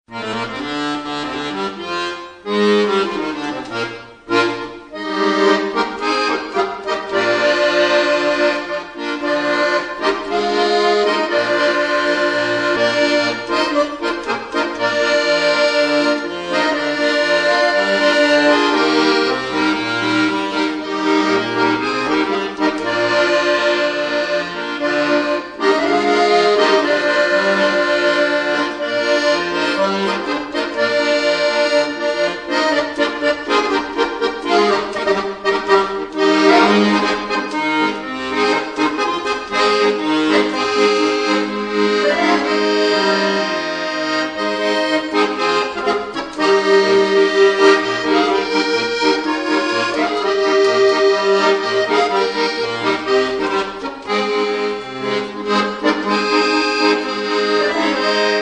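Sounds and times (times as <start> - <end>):
accordion: 0.0 - 58.4.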